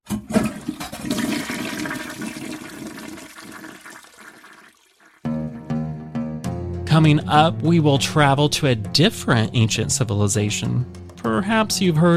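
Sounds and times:
toilet flushing: 0.0s - 5.3s
speech: 7.0s - 12.1s.

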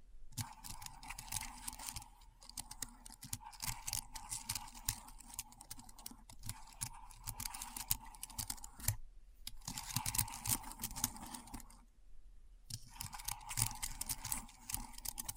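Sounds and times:
rapid keyboard keystrokes clicking: 0.4s - 11.8s, 12.7s - 15.3s.

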